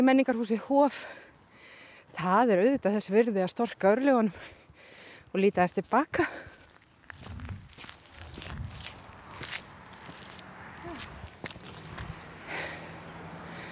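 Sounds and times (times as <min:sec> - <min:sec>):
speech: 0:00.0 - 0:01.3, 0:02.1 - 0:04.6, 0:05.3 - 0:06.5
footsteps walking up the Menntavegur path to a hilltop: 0:05.6 - 0:13.7.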